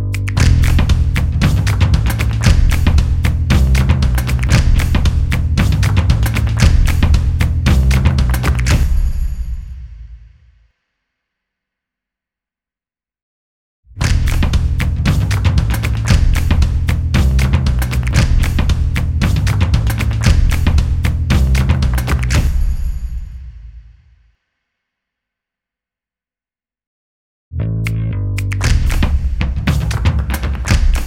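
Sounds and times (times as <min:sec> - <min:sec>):
fashion stomp beat: 0:00.1 - 0:10.0, 0:14.0 - 0:23.4, 0:28.4 - 0:31.0.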